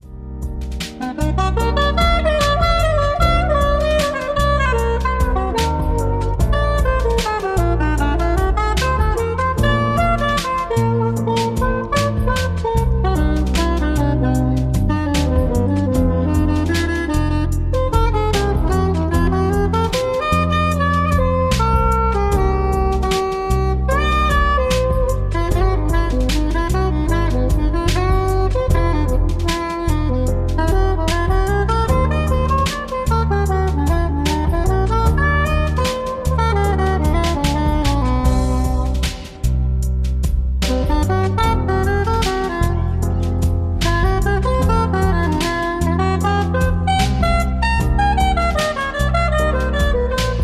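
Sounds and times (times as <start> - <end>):
jazz melodies: 0.0 - 50.4.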